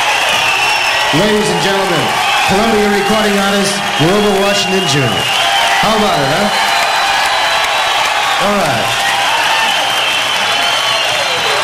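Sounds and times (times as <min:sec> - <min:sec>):
festival crowd applauding at the 1988 Newport Jazz Festival: 0:00.0 - 0:11.6
voices cheering: 0:00.0 - 0:11.6
speech: 0:01.1 - 0:06.7, 0:08.4 - 0:09.0.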